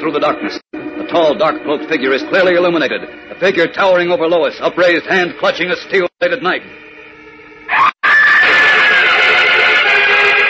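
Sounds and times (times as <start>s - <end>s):
speech: 0.0s - 6.8s
girl's horrified scream in the night air: 7.7s - 9.5s.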